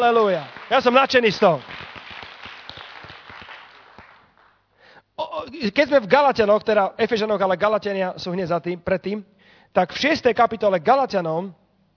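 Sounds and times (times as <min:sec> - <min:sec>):
speech: 0:00.0 - 0:01.7, 0:05.4 - 0:11.6
church congregation clapping during a worship service: 0:00.0 - 0:04.9.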